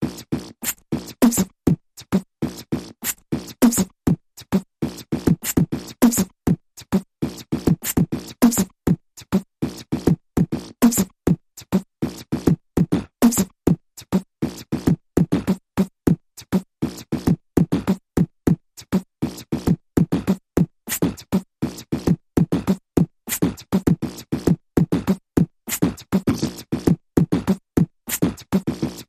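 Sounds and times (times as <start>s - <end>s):
big mouth percussion: 0.0s - 29.0s.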